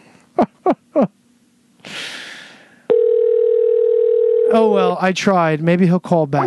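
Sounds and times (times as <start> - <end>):
speech: 0.4 - 1.2, 4.6 - 6.4
Skype call ringing unanswered: 2.9 - 4.7.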